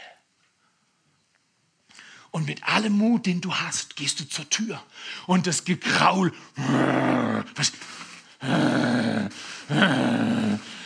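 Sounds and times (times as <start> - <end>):
speech: 2.3 - 10.7
dogs growling: 6.6 - 7.6, 8.4 - 10.8.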